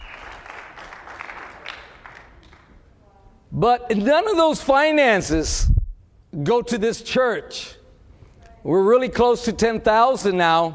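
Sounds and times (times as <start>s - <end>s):
audience clapping: 0.0s - 2.9s
speech: 3.6s - 5.7s, 6.3s - 7.8s, 8.6s - 10.7s.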